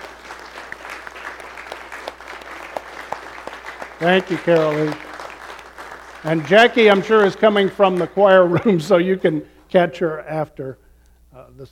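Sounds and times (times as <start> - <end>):
audience applause: 0.0 - 8.8
speech: 4.0 - 5.1, 6.2 - 10.8, 11.5 - 11.7.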